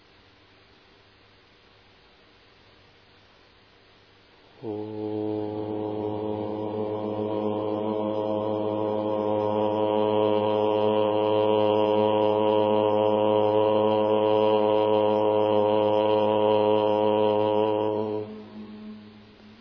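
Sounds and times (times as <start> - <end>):
group chanting the syllable om: 4.5 - 19.6.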